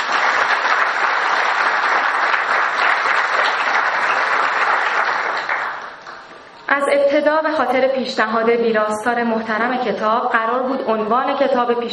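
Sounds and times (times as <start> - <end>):
audience applause: 0.0 - 6.4
speech: 6.8 - 11.9.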